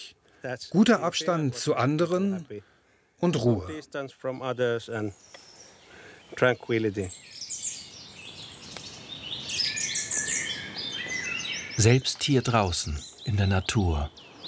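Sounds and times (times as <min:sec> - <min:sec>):
speech: 0:00.0 - 0:05.4, 0:06.3 - 0:07.3, 0:11.8 - 0:14.2
birds singing outdoors: 0:00.7 - 0:14.4.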